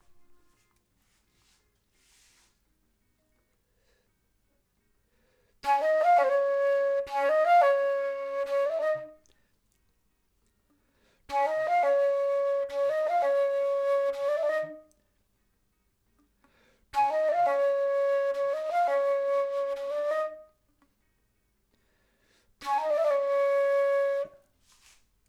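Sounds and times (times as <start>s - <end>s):
flute: 0.0s - 0.8s, 5.6s - 9.4s, 11.3s - 15.1s, 16.9s - 20.7s, 22.6s - 25.0s.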